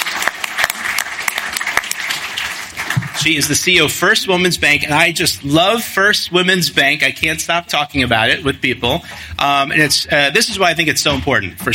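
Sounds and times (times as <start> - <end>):
round of applause: 0.0 - 3.9
speech: 3.2 - 11.7.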